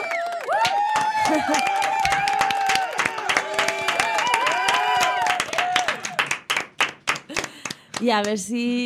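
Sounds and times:
applause for healthcare workers: 0.0 - 8.5
speech: 1.3 - 1.9, 8.0 - 8.8.

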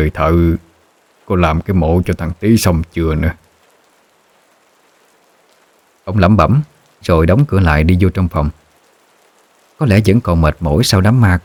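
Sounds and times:
speech: 0.0 - 0.6, 1.3 - 3.4, 6.1 - 8.6, 9.8 - 11.4
heavy rain: 0.0 - 11.4.

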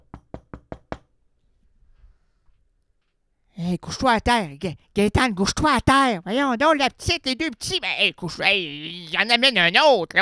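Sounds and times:
knocking on a door: 0.0 - 1.1
speech: 3.7 - 10.2.

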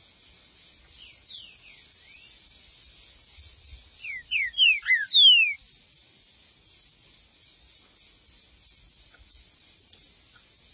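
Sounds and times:
green-winged saltator whistling: 1.0 - 5.8.

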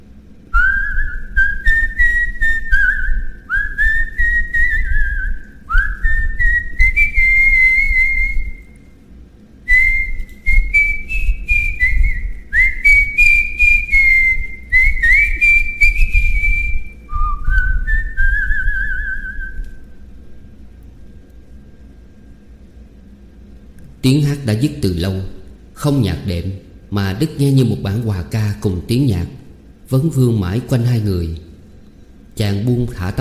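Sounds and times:
soft mouth whistling of a melody: 0.5 - 9.0, 9.7 - 20.0
speech: 24.0 - 31.4, 32.4 - 33.1.

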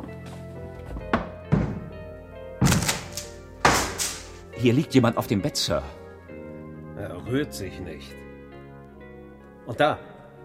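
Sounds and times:
door being broken open: 1.1 - 1.9, 2.6 - 4.4
speech: 4.6 - 6.0, 7.3 - 8.2, 9.7 - 10.1.

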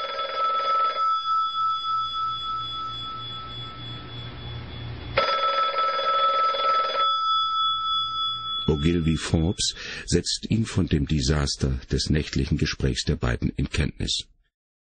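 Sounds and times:
telephone ringing: 0.0 - 9.8
speech: 8.7 - 14.3.

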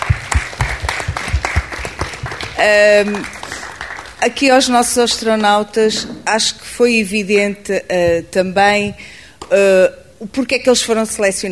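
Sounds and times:
audience applause: 0.0 - 4.2
speech: 2.6 - 3.4, 4.2 - 11.5.

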